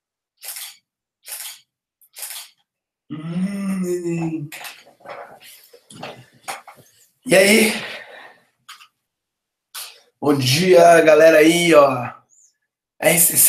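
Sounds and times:
camera shutter clicks taking a photo: 0.4s - 2.6s
speech: 3.1s - 6.4s, 7.2s - 7.9s, 10.3s - 12.2s, 13.0s - 13.4s.

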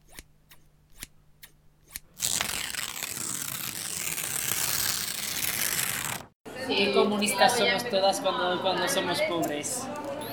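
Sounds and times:
scissors cutting letters out of magazine paper: 0.0s - 6.2s
magazine paper crackling as it is cut and handled: 2.1s - 6.4s
speech: 6.7s - 10.2s.

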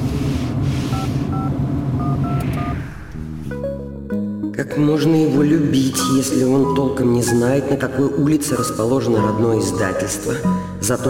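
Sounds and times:
steady low rumbling background: 0.0s - 4.6s
sustained electronic tone: 0.9s - 3.6s
dual-pitched telephone keypad beeps dialling a misplaced phone: 1.0s - 2.8s
speech: 4.6s - 11.0s.

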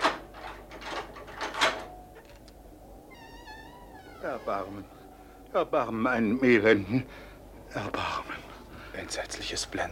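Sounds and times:
heavy tower door unlocked with keys and swung open: 0.0s - 4.8s
speech: 4.2s - 8.4s, 9.0s - 9.9s.

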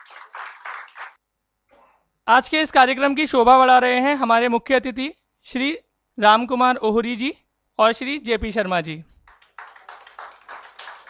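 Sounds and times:
audience clapping: 0.0s - 1.2s, 9.2s - 11.0s
speech: 2.3s - 9.1s.

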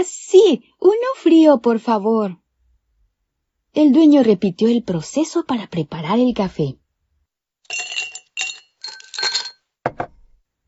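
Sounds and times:
speech: 0.0s - 2.4s, 3.7s - 6.8s
ice cubes clinking in a glass: 7.7s - 9.7s.

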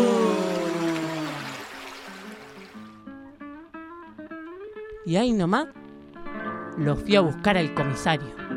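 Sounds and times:
running water: 0.1s - 2.9s
speech: 5.1s - 5.8s, 6.8s - 8.4s.

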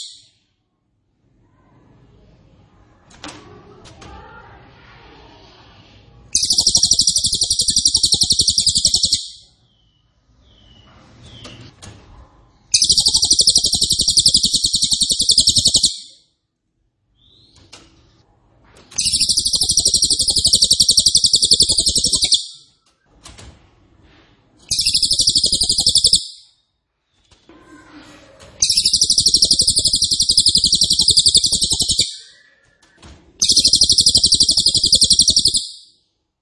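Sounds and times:
cililin buzzy trilling song: 6.4s - 9.5s, 12.7s - 16.2s, 19.0s - 22.7s, 24.7s - 26.5s, 28.6s - 32.5s, 33.4s - 36.0s.

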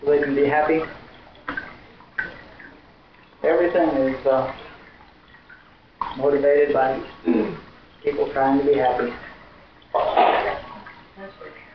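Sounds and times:
speech: 0.1s - 1.0s, 3.7s - 4.6s, 6.2s - 9.3s, 9.9s - 10.3s
sneeze: 10.0s - 10.7s.

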